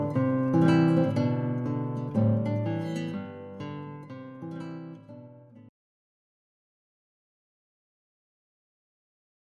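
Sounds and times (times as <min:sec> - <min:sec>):
jazz guitar at a wedding: 0:00.0 - 0:05.7.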